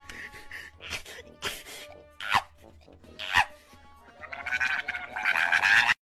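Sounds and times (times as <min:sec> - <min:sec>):
ferret squealing with indignation: 0:02.2 - 0:02.5, 0:03.1 - 0:06.0.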